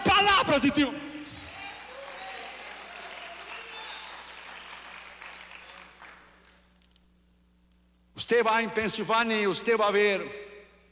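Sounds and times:
speech: 0:00.6 - 0:01.1, 0:08.3 - 0:10.5
audience applause: 0:01.3 - 0:06.6.

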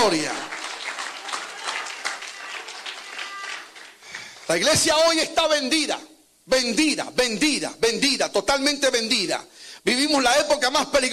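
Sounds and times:
speech: 0:00.0 - 0:00.5, 0:04.5 - 0:11.1
audience applauding: 0:00.0 - 0:04.6.

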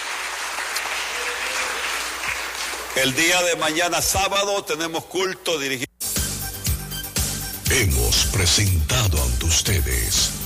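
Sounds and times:
church congregation applauding: 0:00.0 - 0:04.1
speech: 0:03.0 - 0:05.9, 0:07.7 - 0:10.4.

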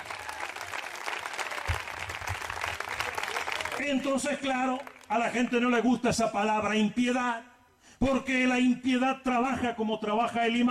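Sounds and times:
audience applause: 0:00.0 - 0:05.6
speech: 0:03.8 - 0:10.6.

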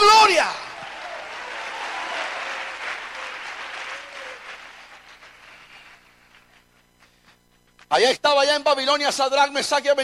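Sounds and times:
audience applause: 0:00.2 - 0:06.6
speech: 0:07.9 - 0:10.0.

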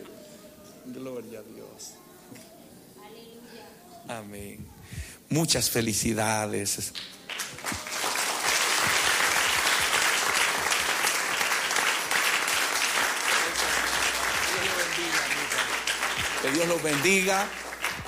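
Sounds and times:
speech: 0:00.9 - 0:02.5, 0:04.0 - 0:07.8, 0:16.5 - 0:17.6
congregation applauding at a church service: 0:06.9 - 0:18.0.

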